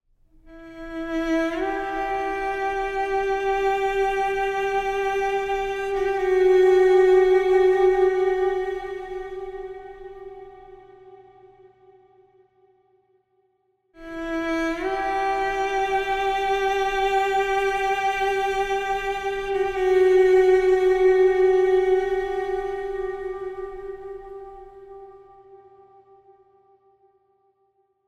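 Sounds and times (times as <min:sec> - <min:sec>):
soft orchestral theme: 0:00.5 - 0:10.9, 0:14.0 - 0:25.6.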